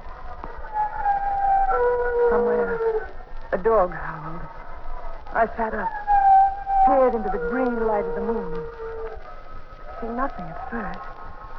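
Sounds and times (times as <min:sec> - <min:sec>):
wind moaning and howling: 0:00.0 - 0:11.5
speech: 0:03.6 - 0:04.2, 0:05.3 - 0:06.0, 0:06.9 - 0:08.8, 0:10.0 - 0:11.1.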